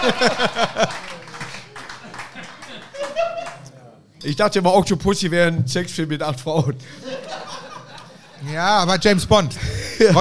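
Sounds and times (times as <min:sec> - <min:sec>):
speech: 0:00.0 - 0:00.6, 0:04.2 - 0:07.2, 0:08.4 - 0:10.1
applause: 0:00.0 - 0:03.6
laughter: 0:00.0 - 0:03.7, 0:06.8 - 0:08.5, 0:09.6 - 0:10.1.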